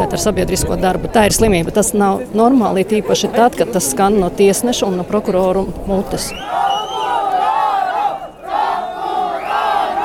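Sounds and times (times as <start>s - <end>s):
speech: 0.1s - 6.6s
protesters shouting outside a courthouse: 6.3s - 10.0s.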